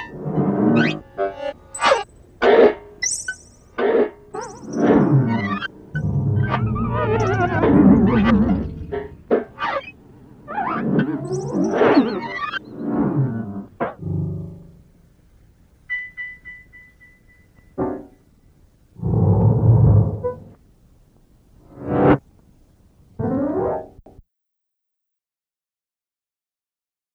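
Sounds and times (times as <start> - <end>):
player piano: 0.0 - 18.2, 19.0 - 20.6
tape playback: 0.0 - 24.2.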